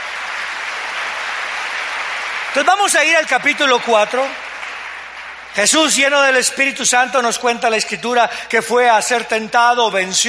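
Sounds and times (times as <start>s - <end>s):
audience applauding: 0.0s - 6.5s
speech: 2.6s - 4.4s, 5.5s - 10.2s.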